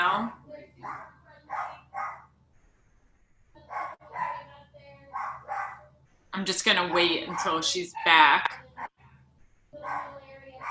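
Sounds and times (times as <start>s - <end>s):
dogs barking: 0.8s - 2.4s, 3.6s - 6.0s, 6.7s - 9.0s, 9.8s - 10.6s
speech: 6.4s - 8.6s.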